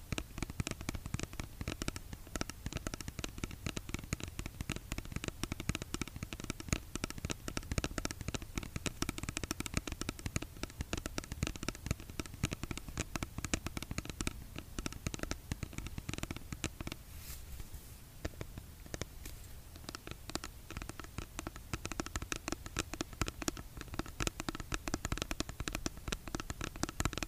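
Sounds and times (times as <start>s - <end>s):
rapid tapping on a skincare product: 0.0s - 17.0s, 18.2s - 27.2s.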